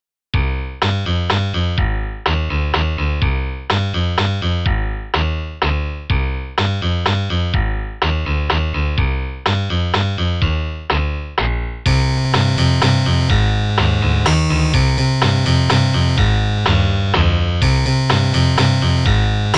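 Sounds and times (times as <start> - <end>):
in-game music: 0.4 - 19.5.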